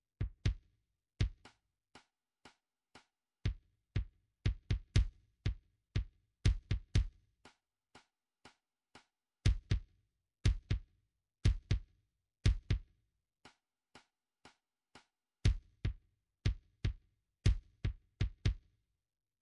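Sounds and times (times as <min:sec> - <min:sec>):
kick drum: 0:00.2 - 0:01.6, 0:03.4 - 0:07.2, 0:09.5 - 0:12.9, 0:15.5 - 0:18.7.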